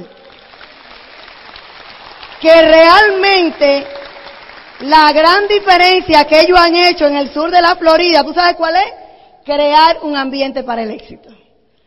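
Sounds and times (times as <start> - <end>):
audience applause: 0.0 - 5.5
speech: 2.4 - 4.0, 4.8 - 11.3.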